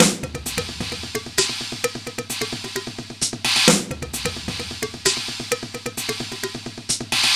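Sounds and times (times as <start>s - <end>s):
drum loop: 0.0s - 6.7s.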